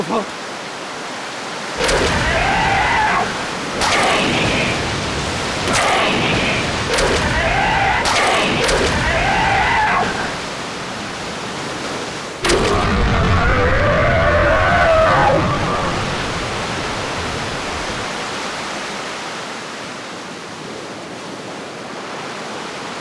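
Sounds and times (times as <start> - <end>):
churning seawater and waves: 0.0 - 19.7
whip lashes striking the sea: 3.8 - 4.9, 5.5 - 7.4, 8.0 - 9.1.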